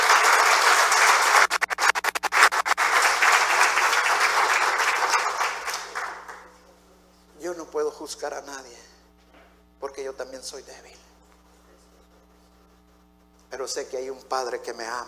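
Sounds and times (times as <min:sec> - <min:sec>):
audience applause: 0:00.0 - 0:06.5
speech: 0:08.1 - 0:08.9, 0:10.0 - 0:11.1, 0:13.6 - 0:15.0.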